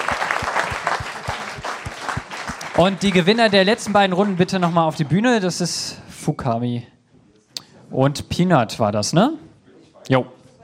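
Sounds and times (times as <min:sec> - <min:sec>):
audience applause on a quiz game show stage: 0:00.0 - 0:05.6
speech: 0:02.8 - 0:06.9, 0:07.9 - 0:09.4, 0:10.0 - 0:10.4.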